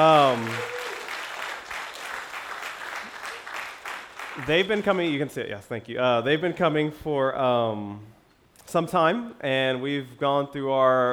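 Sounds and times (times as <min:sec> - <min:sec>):
speech: 0:00.0 - 0:00.7, 0:04.4 - 0:11.1
church congregation clapping to welcome new members: 0:00.0 - 0:05.3.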